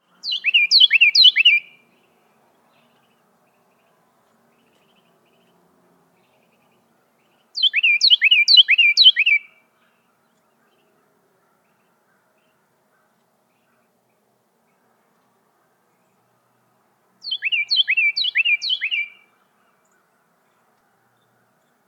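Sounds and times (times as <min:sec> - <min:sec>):
Carolina Wren singing: 0:00.0 - 0:03.9, 0:06.2 - 0:09.5, 0:17.2 - 0:20.0.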